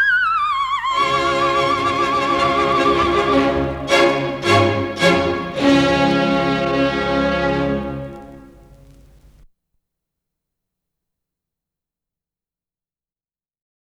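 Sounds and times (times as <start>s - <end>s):
coloratura soprano singing: 0.1s - 8.4s.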